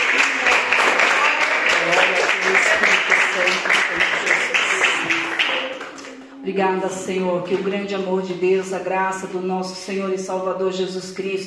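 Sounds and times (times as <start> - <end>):
crowd clapping: 0.0 - 6.4
speech: 6.5 - 11.4.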